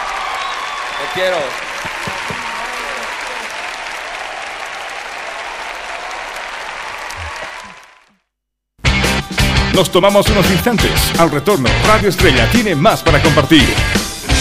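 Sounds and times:
audience applause: 0.0s - 8.2s
speech: 1.0s - 2.0s, 9.8s - 14.0s.

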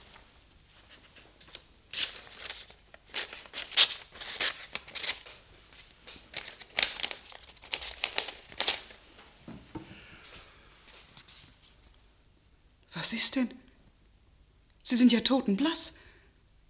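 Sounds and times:
paper letter being handled and opened: 0.0s - 9.1s
speech: 13.1s - 13.6s, 14.9s - 16.0s.

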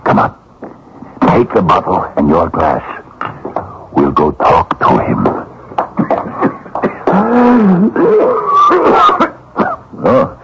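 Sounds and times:
speech: 0.2s - 0.4s, 1.4s - 5.5s, 7.2s - 9.2s, 10.0s - 10.4s
person coughing: 8.8s - 10.3s.

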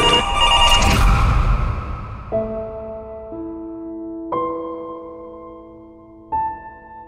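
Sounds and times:
telephone ringing in electronic tones: 0.0s - 0.9s
noisy rush: 0.0s - 3.3s.

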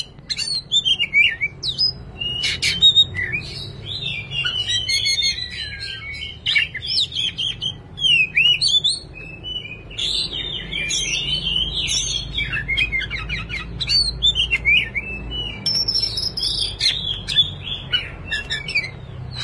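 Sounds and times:
Oriental magpie-robin singing: 0.0s - 19.4s.

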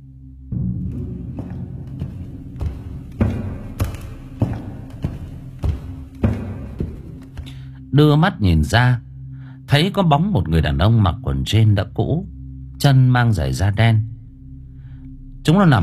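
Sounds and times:
heavy footsteps: 0.5s - 7.9s
speech: 8.0s - 9.0s, 9.7s - 14.1s, 15.4s - 15.8s.

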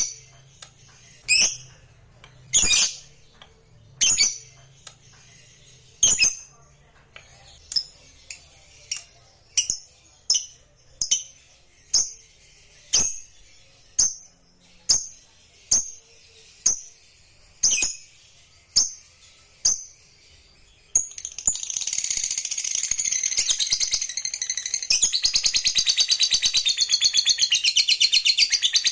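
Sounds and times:
lovebird shrill clicky chirps: 0.0s - 28.9s.

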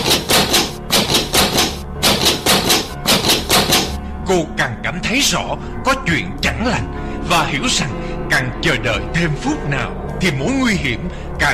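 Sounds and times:
pounding hard on a door: 0.0s - 4.0s
speech: 4.3s - 11.5s.

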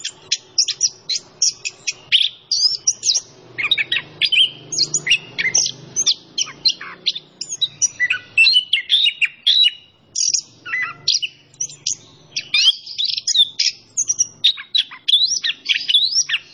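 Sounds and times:
orange-headed thrush singing energetically: 0.0s - 16.5s.

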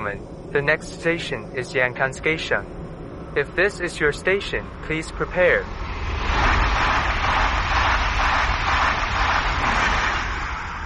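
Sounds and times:
speech: 0.0s - 2.8s, 3.4s - 5.8s
high-speed train arriving at station: 0.0s - 10.8s.

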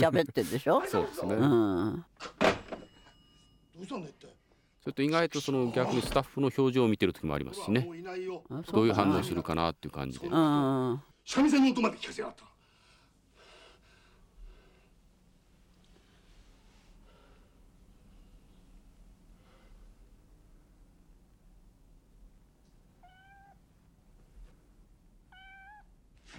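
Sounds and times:
speech: 0.0s - 2.6s, 3.8s - 12.5s
black-and-white cat meowing: 23.0s - 23.6s, 25.3s - 25.9s.

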